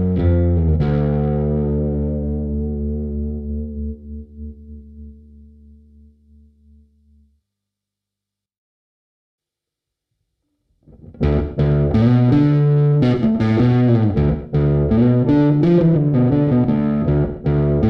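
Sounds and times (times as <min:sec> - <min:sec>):
bass through overdrive pedal with ambiance: 0:00.0 - 0:07.2, 0:10.8 - 0:17.8.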